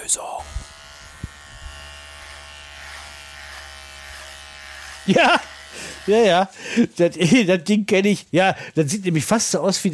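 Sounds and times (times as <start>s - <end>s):
speech: 0.1s - 0.8s, 5.0s - 9.9s
electric razor buzzing: 0.1s - 6.6s.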